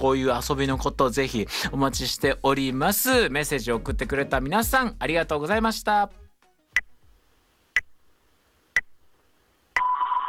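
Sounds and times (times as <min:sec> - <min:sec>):
speech: 0:00.0 - 0:06.2
radio time signal beeps marking midnight: 0:09.8 - 0:10.2.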